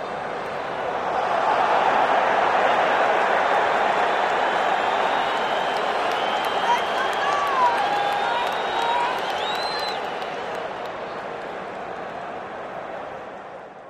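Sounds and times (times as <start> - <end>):
very large crowd cheering and screaming at a pro football game in an outdoor stadium: 0.2 - 13.2.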